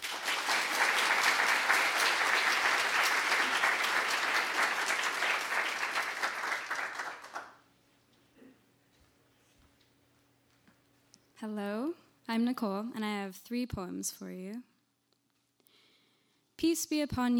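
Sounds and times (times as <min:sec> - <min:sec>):
audience applauding in a room: 0:00.0 - 0:07.6
speech: 0:12.4 - 0:14.7, 0:16.6 - 0:17.3.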